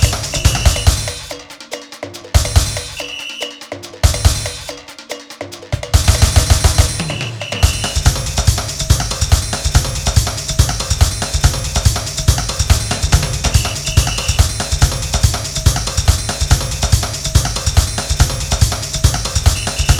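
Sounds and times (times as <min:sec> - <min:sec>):
samba rhythm: 0:00.0 - 0:19.9.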